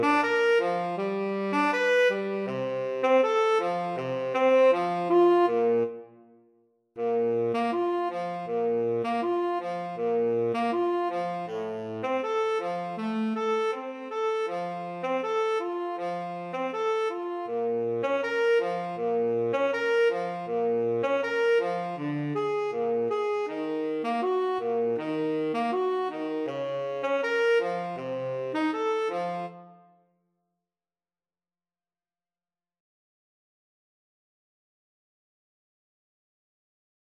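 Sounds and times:
alto and tenor saxophone duet: 0:00.0 - 0:06.3, 0:07.0 - 0:30.0.

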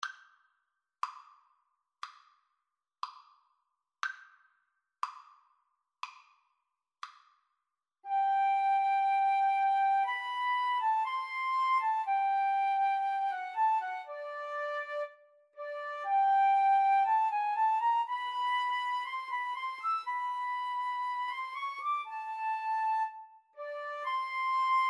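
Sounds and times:
romantic violin and flute duet: 0:08.1 - 0:24.8.

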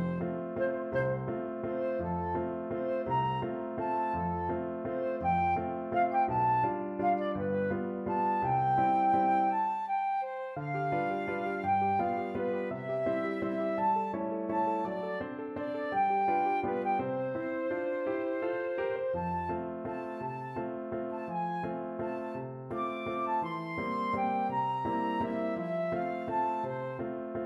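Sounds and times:
flute piece: 0:00.0 - 0:27.4.

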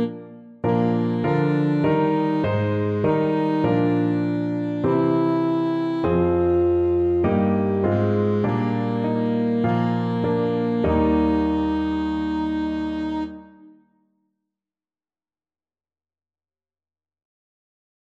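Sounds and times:
alto saxophone duet: 0:00.0 - 0:13.8.

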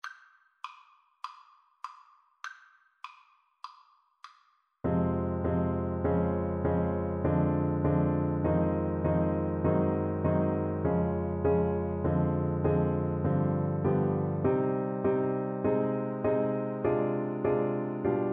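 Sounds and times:
four-hands piano duet: 0:04.9 - 0:18.3.

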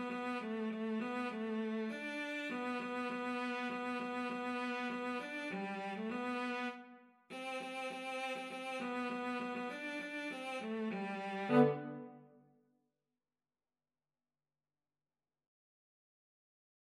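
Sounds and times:
cello duet: 0:00.0 - 0:12.2.

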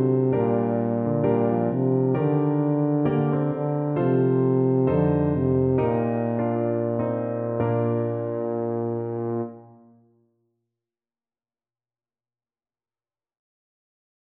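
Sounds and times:
tuba melody: 0:00.0 - 0:10.0.

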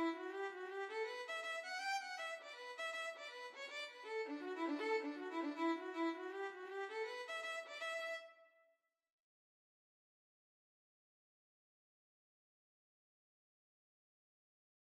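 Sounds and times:
violin melody: 0:00.0 - 0:08.4.

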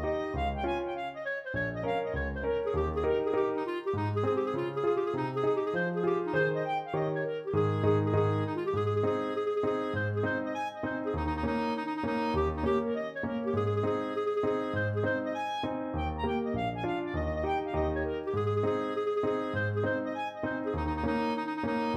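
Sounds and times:
clarinet: 0:00.0 - 0:21.9
trumpet hornpipe: 0:00.0 - 0:21.9.

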